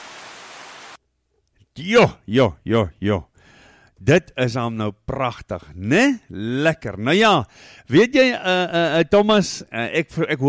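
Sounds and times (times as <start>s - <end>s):
rain on a corrugated iron roof in the Sandveld: 0.0s - 1.0s
speech: 1.8s - 3.3s, 4.0s - 10.4s.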